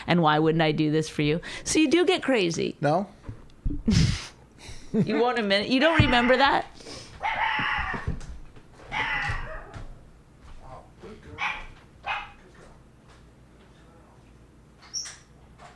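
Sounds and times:
speech: 0.0s - 3.2s, 3.9s - 4.2s, 4.9s - 7.4s
dog barking: 8.9s - 9.8s, 11.4s - 12.4s.

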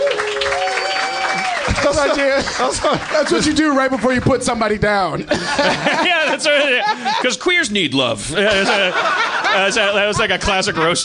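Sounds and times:
applause: 0.0s - 4.3s
laughter: 1.8s - 3.6s, 5.1s - 7.5s, 8.3s - 11.0s
speech: 2.0s - 11.0s.

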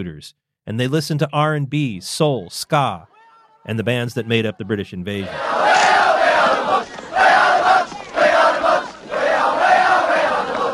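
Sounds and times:
speech: 0.0s - 6.0s
street fighting between rival youth gangs: 3.0s - 10.7s.

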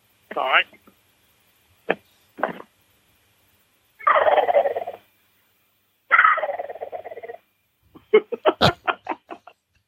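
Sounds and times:
Hank gobble call imitating a gobbler: 4.0s - 5.0s, 6.1s - 7.4s
laughter: 8.0s - 9.6s.

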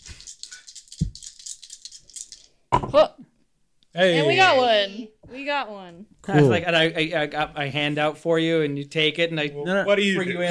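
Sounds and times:
dice rolling: 0.0s - 2.6s
speech: 2.8s - 3.3s, 3.9s - 10.4s.

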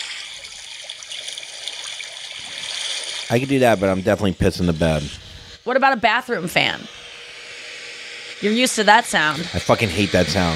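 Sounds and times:
evening lake water ambience from app: 0.0s - 4.5s
speech: 3.3s - 7.0s, 8.4s - 10.5s.

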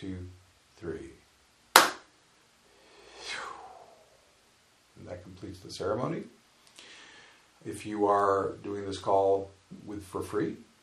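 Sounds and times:
speech: 0.0s - 1.2s, 5.3s - 6.4s, 7.6s - 10.7s
hands clapping: 1.8s - 2.1s.

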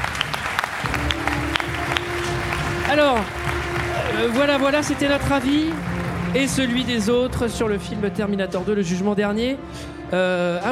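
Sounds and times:
small group clapping: 0.0s - 7.1s
speech: 4.2s - 10.7s.

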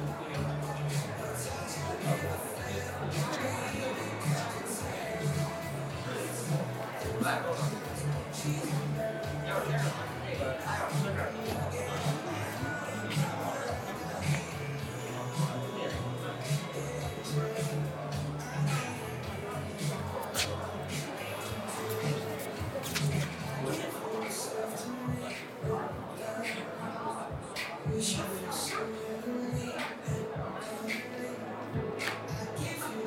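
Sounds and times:
murmur of voices in the Apple store in Sanlitun, Beijing: 0.0s - 33.0s
shuffling: 21.7s - 24.4s.

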